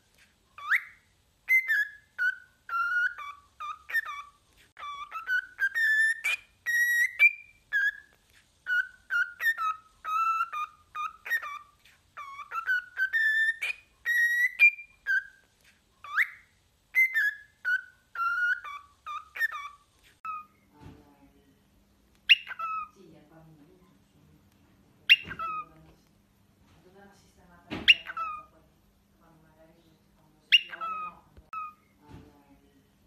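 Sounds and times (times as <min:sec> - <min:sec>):
cockatiel whistling: 0:00.1 - 0:20.6, 0:22.3 - 0:23.0, 0:25.1 - 0:25.7, 0:27.8 - 0:28.5, 0:30.5 - 0:31.9
soft thump: 0:27.7 - 0:28.0.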